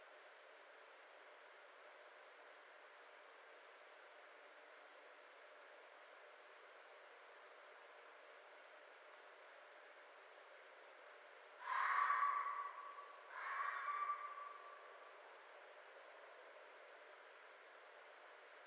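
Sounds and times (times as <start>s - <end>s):
red fox calling: 11.6s - 15.0s.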